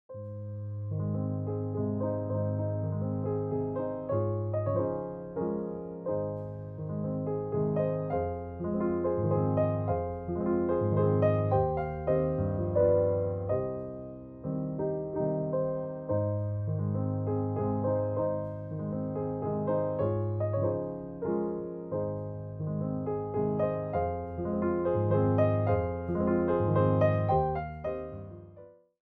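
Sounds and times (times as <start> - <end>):
piano waltz in A flat major: 0.1 - 28.9.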